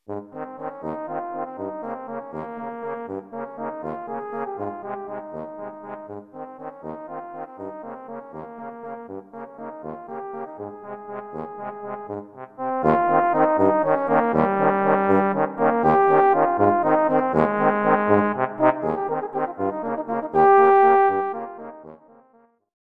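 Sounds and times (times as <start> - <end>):
Italian air melody: 0.1 - 21.9.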